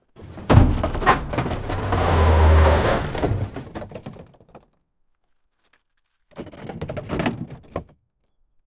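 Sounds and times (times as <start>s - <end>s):
truck picking up a box at the port: 0.2s - 3.6s.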